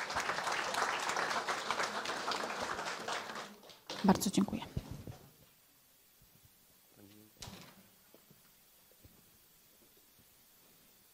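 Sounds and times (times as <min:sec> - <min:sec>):
audience applause: 0:00.0 - 0:04.4
speech: 0:04.0 - 0:04.8.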